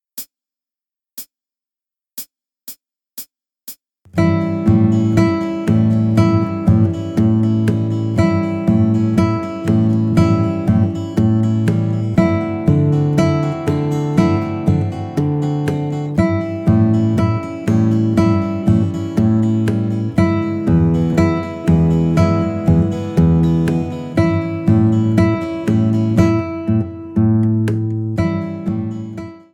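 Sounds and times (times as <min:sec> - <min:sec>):
blues on the E string: 0:04.1 - 0:29.3.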